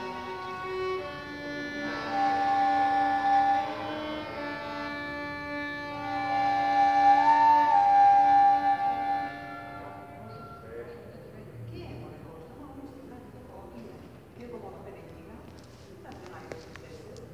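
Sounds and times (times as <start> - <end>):
improvised music: 0.0 - 10.6.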